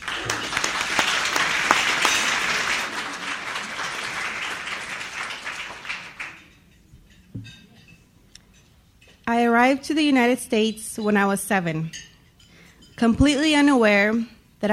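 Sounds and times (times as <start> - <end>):
audience applause welcoming a student speaker at College of St. Mary: 0.0 - 6.5
speech: 9.4 - 12.1, 13.0 - 14.7.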